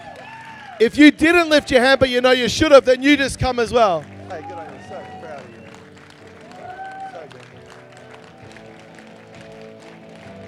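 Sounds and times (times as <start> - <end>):
whoop: 0.0 - 0.8, 4.4 - 5.7, 6.5 - 7.3
audience cheering and clapping: 0.0 - 10.4
music: 0.0 - 10.4
speech: 0.8 - 5.2.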